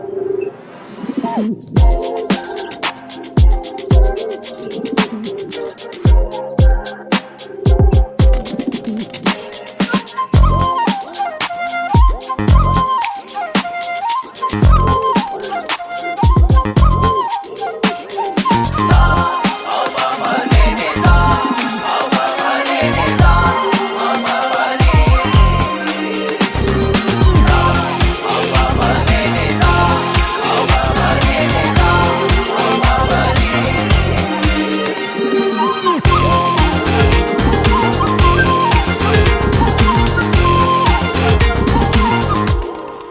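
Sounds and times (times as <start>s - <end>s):
Malayalam flute background music ringtone: 1.2s - 43.0s.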